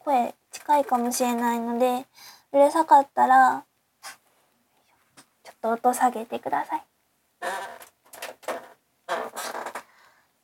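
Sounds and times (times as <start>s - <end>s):
speech: 0.1s - 4.2s, 5.6s - 7.6s
creaking chair: 7.4s - 9.9s.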